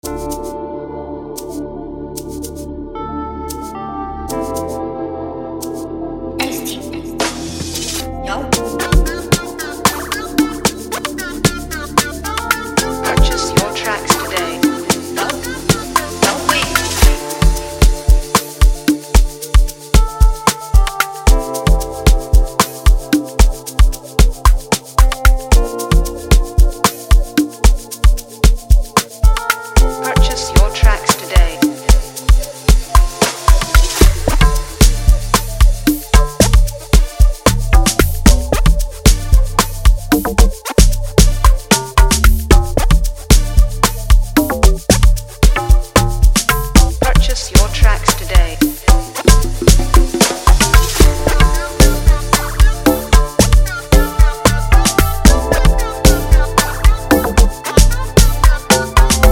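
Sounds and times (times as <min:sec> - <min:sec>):
beat: 0:06.4 - 0:59.3.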